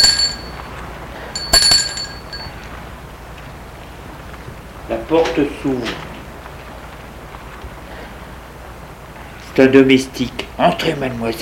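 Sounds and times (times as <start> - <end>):
bell ringing: 0.0 - 2.7
speech: 5.1 - 6.1, 9.6 - 11.4.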